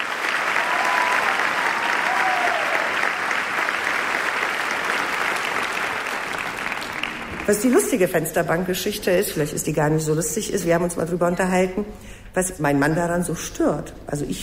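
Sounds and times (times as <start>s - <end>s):
faint cheering: 0.0s - 3.8s
audience applause: 0.0s - 8.0s
speech: 7.5s - 14.4s.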